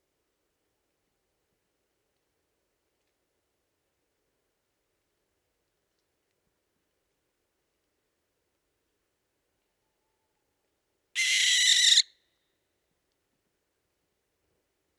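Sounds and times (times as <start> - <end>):
barn owl Tyto alba calling: 11.2 - 12.1.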